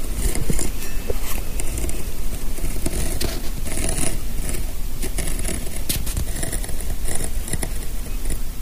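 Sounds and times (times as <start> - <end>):
hand tool cutting through leather: 0.0 - 8.4.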